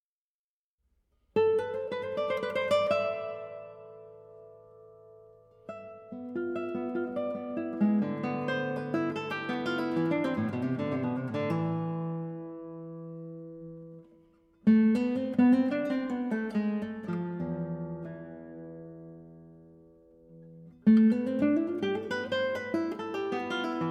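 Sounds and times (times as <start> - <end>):
guitar solo: 1.4 - 23.8.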